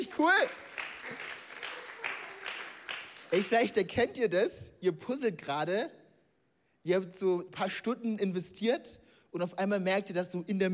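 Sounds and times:
applause: 0:00.0 - 0:03.9
speech: 0:00.2 - 0:01.3, 0:03.3 - 0:06.0, 0:06.8 - 0:10.7.

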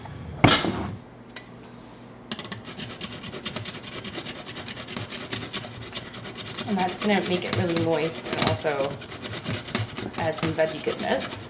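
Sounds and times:
zucchini being grated on a grater during kitchen meal prep: 0:02.6 - 0:11.4
speech: 0:06.7 - 0:09.1, 0:10.2 - 0:11.4.

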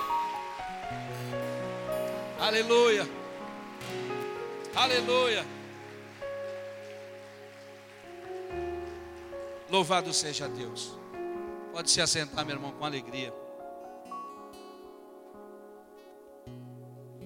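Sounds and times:
audience applauding: 0:00.0 - 0:11.2
speech: 0:02.4 - 0:03.2, 0:04.8 - 0:05.6, 0:09.7 - 0:11.0, 0:11.8 - 0:13.4.

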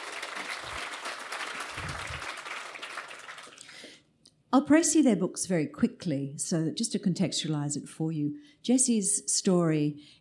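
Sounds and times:
audience applause: 0:00.0 - 0:03.7
speech: 0:04.5 - 0:10.1.

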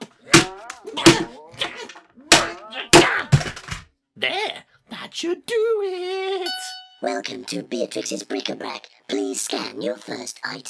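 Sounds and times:
hammer repeatedly hitting a machine: 0:00.0 - 0:03.8
speech: 0:05.2 - 0:06.2, 0:07.0 - 0:10.6.

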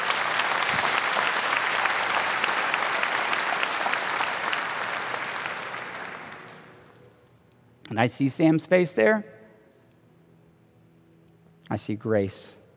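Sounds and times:
crowd applauding: 0:00.0 - 0:07.0
speech: 0:07.9 - 0:09.3, 0:11.7 - 0:12.6.

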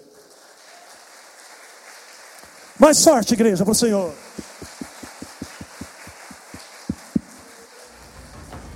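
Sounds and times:
audience applause: 0:00.0 - 0:08.5
speech: 0:02.8 - 0:04.5.

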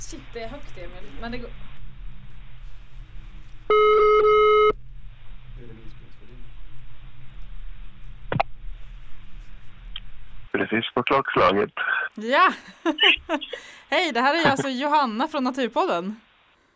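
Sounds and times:
low hum: 0:00.0 - 0:16.7
speech: 0:00.1 - 0:01.8, 0:10.7 - 0:16.2
telephone ringing tone on outgoing call: 0:03.7 - 0:04.8
laughter: 0:12.5 - 0:13.8, 0:14.4 - 0:14.7.

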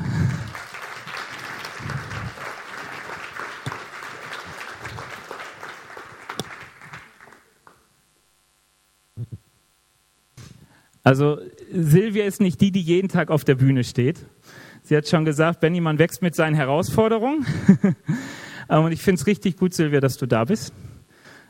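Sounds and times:
laughter: 0:00.0 - 0:07.0
applause: 0:00.0 - 0:07.9
speech: 0:11.1 - 0:20.8.

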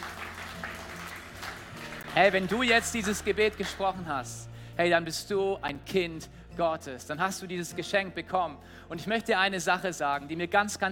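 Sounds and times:
audience applause: 0:00.0 - 0:03.8
speech: 0:02.2 - 0:10.9.

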